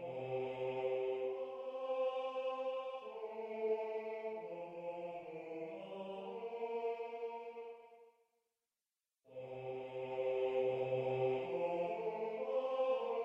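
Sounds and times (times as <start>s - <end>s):
tenor choir singing: 0.0s - 8.0s, 9.3s - 13.2s.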